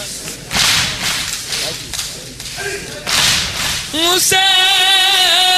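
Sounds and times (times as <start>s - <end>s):
hands beating chests: 0.3s - 3.9s
speech: 3.9s - 5.4s.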